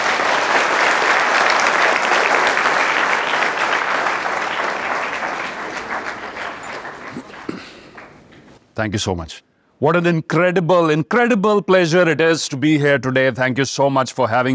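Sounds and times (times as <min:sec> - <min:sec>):
audience applause welcoming a speaker onto a stage: 0:00.0 - 0:08.4
speech: 0:08.8 - 0:14.5.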